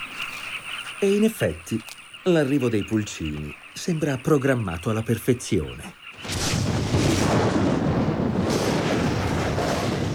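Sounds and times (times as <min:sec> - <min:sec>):
speech: 0:01.0 - 0:06.4
rough windy roar: 0:06.2 - 0:10.1
thunder from a lightning storm rumbling: 0:06.2 - 0:10.1.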